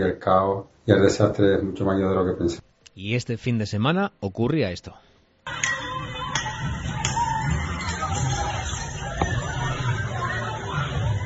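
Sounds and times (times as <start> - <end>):
speech: 0.0 - 5.7
street fight crowd shouting: 5.5 - 11.2.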